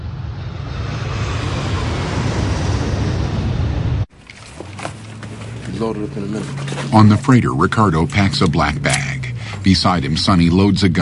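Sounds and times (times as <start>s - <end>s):
plane flying low over a trailer park: 0.0s - 11.0s
speech: 5.8s - 11.0s.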